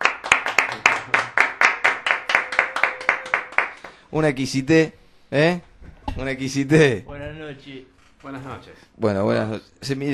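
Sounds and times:
applause: 0.0s - 4.0s
speech: 4.1s - 10.1s.

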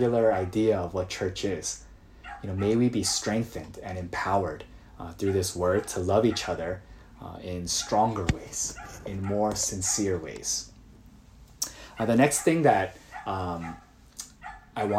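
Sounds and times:
speech: 0.0s - 10.7s, 12.0s - 13.8s, 14.8s - 14.9s
dog barking outside: 2.2s - 3.3s, 7.8s - 10.1s, 12.0s - 14.9s.

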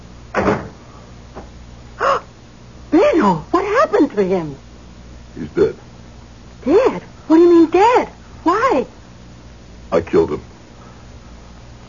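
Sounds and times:
door shutting with a dull thud: 0.3s - 0.8s
speech: 3.2s - 4.7s, 5.4s - 5.9s, 6.6s - 9.0s, 9.9s - 10.5s.

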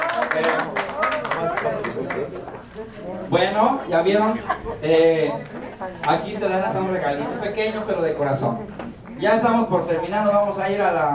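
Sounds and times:
audience applause: 0.0s - 2.4s
speech: 2.8s - 11.1s
laughter: 4.1s - 6.0s.

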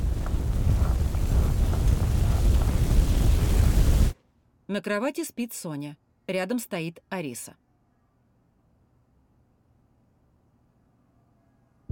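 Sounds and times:
petrol fire roaring after being lit with a lighter: 0.0s - 4.2s
speech: 4.7s - 7.6s.

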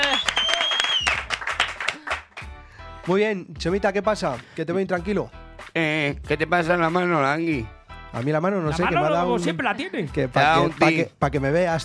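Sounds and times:
scattered applause: 0.0s - 2.5s
speech: 3.1s - 11.8s.

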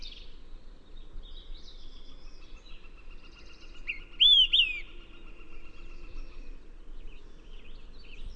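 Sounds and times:
Olive-sided Flycatcher Contopus cooperi slurred whistled song phrase: 3.9s - 4.9s.

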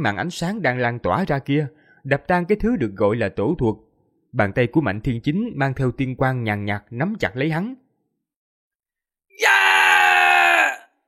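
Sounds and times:
speech: 0.0s - 7.8s
man's long drawn-out scream: 9.4s - 10.9s.

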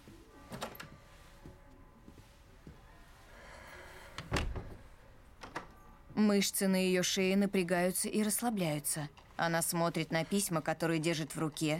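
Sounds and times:
door closing: 4.1s - 5.8s
speech: 6.2s - 11.7s.

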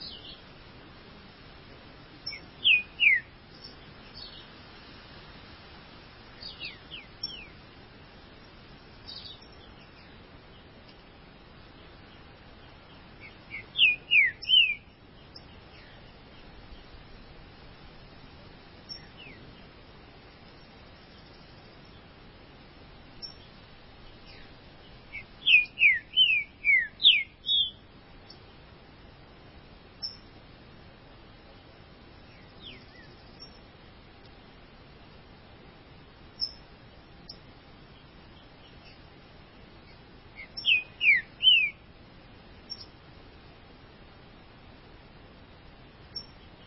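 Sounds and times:
green-winged saltator downslurred whistles: 2.3s - 3.3s, 13.5s - 14.8s, 25.5s - 27.8s, 40.4s - 41.8s.

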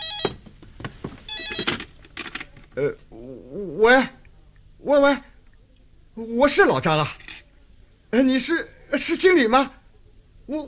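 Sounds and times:
telephone ringing: 0.0s - 0.4s, 1.3s - 1.9s
speech: 2.8s - 4.2s, 4.8s - 5.3s, 6.2s - 7.2s, 8.1s - 9.8s, 10.5s - 10.6s.

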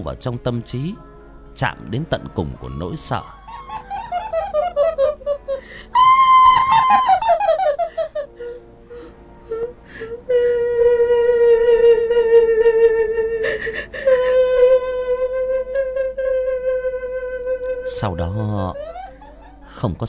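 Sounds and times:
speech: 0.0s - 3.7s, 18.0s - 18.8s, 19.8s - 20.0s
eerie maniacal laughter: 3.1s - 10.5s, 11.1s - 19.8s
person screaming: 5.9s - 7.4s.

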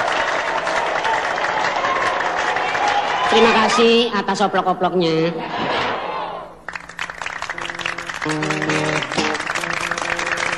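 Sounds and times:
audience applause: 0.0s - 3.4s, 6.7s - 10.5s
speech: 3.3s - 5.6s, 8.2s - 8.9s.

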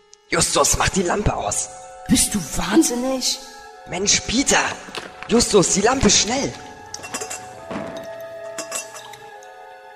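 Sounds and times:
speech: 0.3s - 6.7s
water dripping: 4.8s - 9.6s.

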